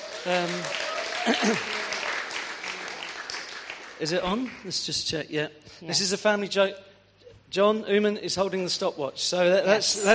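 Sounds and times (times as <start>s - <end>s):
audience applause in a church welcoming a speaker: 0.0s - 5.0s
speech: 0.2s - 1.8s, 4.0s - 6.9s, 7.5s - 10.1s.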